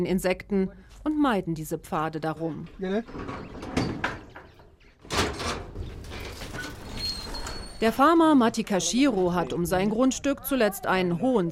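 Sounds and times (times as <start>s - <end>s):
speech: 0.0s - 3.8s, 7.8s - 11.4s
stiff heavy farm gate grinding and scraping open: 3.0s - 8.7s.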